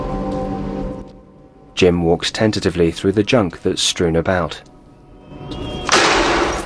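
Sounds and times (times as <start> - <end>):
speech: 1.8 - 4.7
sign falling over in the wind: 5.8 - 6.6.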